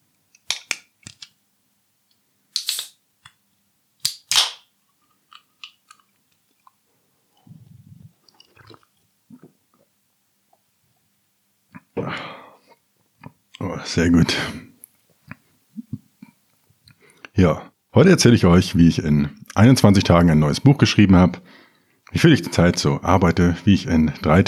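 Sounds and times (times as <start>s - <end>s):
beer can being opened: 2.6s - 3.0s, 4.0s - 4.7s
speech: 13.8s - 14.6s, 17.4s - 24.4s.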